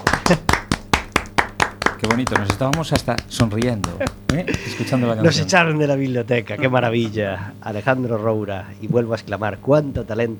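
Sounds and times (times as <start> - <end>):
hand clapping: 0.0 - 4.9
speech: 0.3 - 0.6, 2.0 - 10.3
laughter: 2.0 - 7.6.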